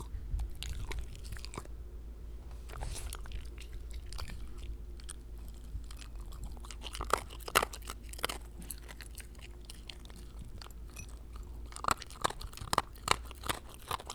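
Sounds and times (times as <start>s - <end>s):
Shiba Inu chewing food: 0.0s - 14.1s.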